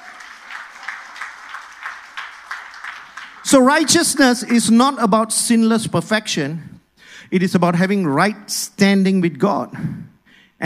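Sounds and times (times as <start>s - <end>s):
audience clapping: 0.0s - 5.2s
speech: 3.4s - 6.7s, 7.3s - 10.6s.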